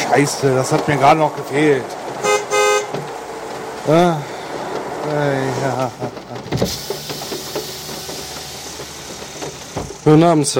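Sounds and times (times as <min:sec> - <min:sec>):
speech: 0:00.1 - 0:02.1, 0:03.9 - 0:04.3, 0:05.0 - 0:06.9, 0:10.0 - 0:10.5
car horn honking: 0:02.2 - 0:03.4.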